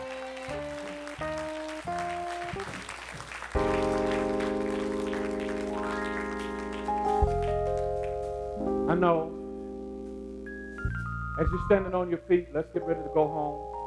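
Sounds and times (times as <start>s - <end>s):
crowd audience hand clapping: 0.0s - 8.4s
speech: 0.5s - 0.8s, 8.9s - 9.4s, 11.4s - 13.7s.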